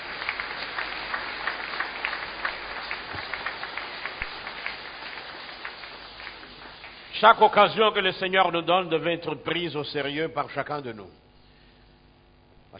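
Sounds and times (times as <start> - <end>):
church congregation applauding during a French-language worship service: 0.0 - 8.3
speech: 7.2 - 11.2.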